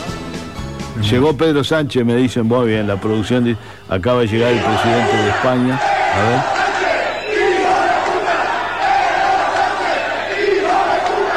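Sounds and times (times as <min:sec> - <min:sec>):
speech: 0:01.0 - 0:06.6
crowd shouting at arriving politician: 0:02.6 - 0:03.6, 0:04.2 - 0:11.3.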